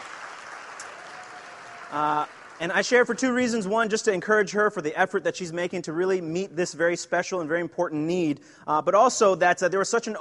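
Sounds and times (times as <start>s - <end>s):
faint audience applause: 0.0s - 3.5s
speech: 1.9s - 10.2s.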